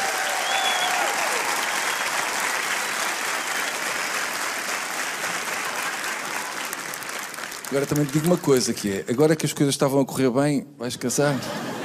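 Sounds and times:
audience clapping: 0.0 - 9.4
speech: 7.7 - 11.7
laughter: 11.2 - 11.8.

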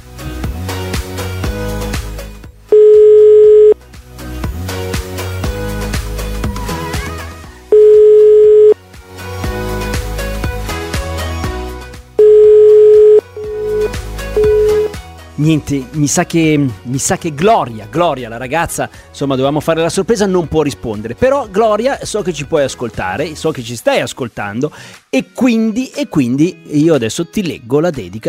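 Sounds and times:
telephone ringback tone: 2.7 - 3.8, 7.7 - 8.8, 12.2 - 14.9
speech: 15.4 - 28.2.

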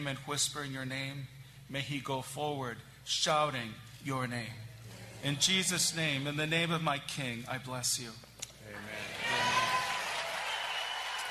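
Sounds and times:
speech: 0.0 - 9.3
crowd applauding: 8.8 - 11.2.

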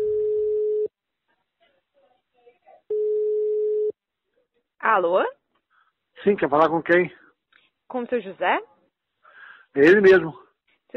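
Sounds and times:
mobile phone call ringback tone beeps: 0.0 - 0.9, 2.9 - 3.9
speech: 4.8 - 5.4, 6.2 - 7.2, 7.9 - 8.7, 9.8 - 10.9.

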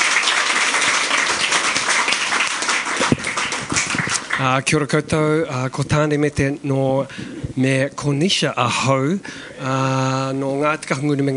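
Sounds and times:
crowd applauding: 0.0 - 4.6
speech: 4.4 - 11.3.

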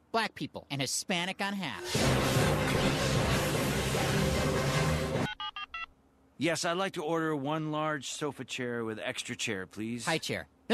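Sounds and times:
speech: 0.2 - 3.3, 6.4 - 10.7
hissing static: 1.8 - 5.3
touch-tone beeps of a phone number being dialed: 5.2 - 5.9.

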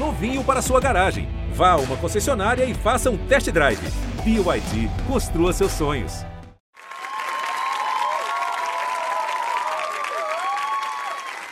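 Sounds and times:
speech: 0.1 - 6.3
studio audience applause: 6.7 - 11.5
faint whoops and cheers: 6.8 - 11.5.

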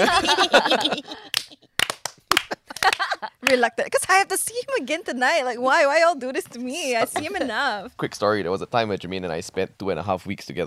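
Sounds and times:
speech: 0.0 - 1.1, 3.5 - 10.6
laughter: 0.0 - 1.7, 2.3 - 3.4, 6.9 - 7.8
people clapping: 0.1 - 3.7.

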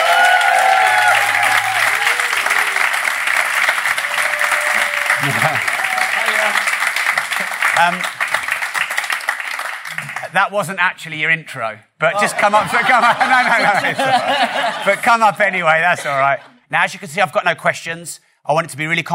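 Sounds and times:
voices and cheers: 0.0 - 6.8
large audience applause: 0.0 - 10.4
laughter: 5.0 - 6.4, 12.2 - 16.6
speech: 7.8 - 8.2, 10.4 - 19.1.

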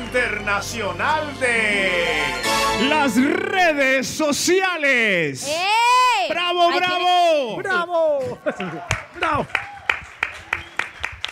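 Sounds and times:
speech: 0.2 - 9.7
laughter: 6.7 - 9.5
small audience applauding: 8.2 - 11.3.

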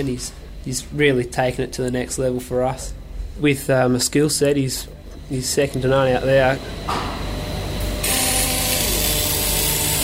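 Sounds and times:
speech: 0.0 - 7.2
welding on metal panels to attach rails: 7.2 - 10.0.

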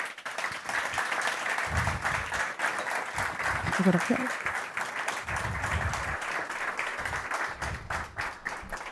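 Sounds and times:
audience applause for award winner, the director of Banegården: 0.0 - 8.9
people talking: 3.7 - 4.3.

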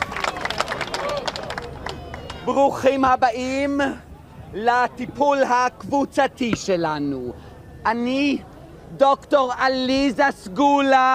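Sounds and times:
crowd applauding: 0.0 - 2.7
speech: 2.4 - 11.1.

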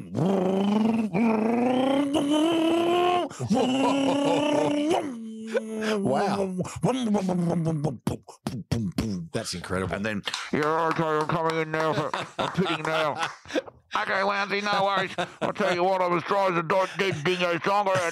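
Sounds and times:
voice imitating a supercar engine roar: 0.0 - 5.2
laughter: 1.5 - 7.8, 10.6 - 18.1
speech: 3.5 - 5.1, 6.6 - 8.5, 9.4 - 18.1.

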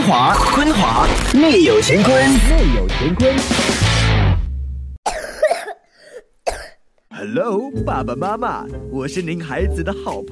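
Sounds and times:
speech: 0.1 - 3.7, 7.2 - 10.3
child coughing: 5.0 - 6.9.

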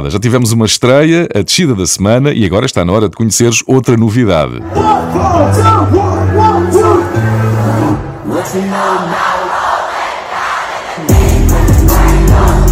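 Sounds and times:
speech: 0.0 - 6.1
concert audience crowd cheering: 4.6 - 12.6.

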